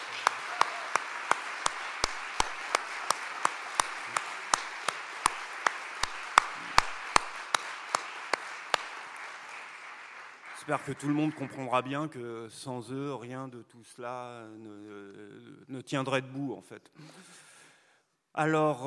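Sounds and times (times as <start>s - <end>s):
audience applause: 0.0s - 11.9s
speech: 10.7s - 17.4s, 18.4s - 18.8s.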